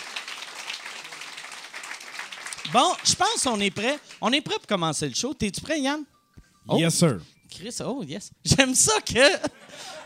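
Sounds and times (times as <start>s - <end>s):
audience applause: 0.0s - 4.2s
speech: 2.6s - 10.0s.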